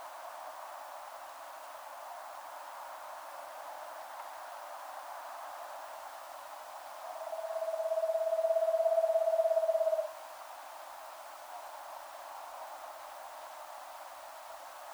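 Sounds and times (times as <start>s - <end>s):
Eastern screech owl Megascops asio trilling: 7.2s - 10.1s.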